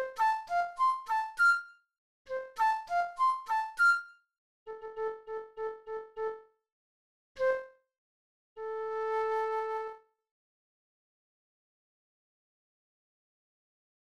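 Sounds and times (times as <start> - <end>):
flute playing: 0.2 - 1.7, 2.4 - 4.0, 8.8 - 10.0.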